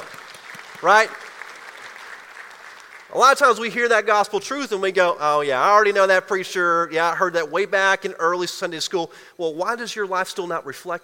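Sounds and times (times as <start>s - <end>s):
people clapping: 0.0s - 3.7s
speech: 0.8s - 1.2s, 3.1s - 11.0s.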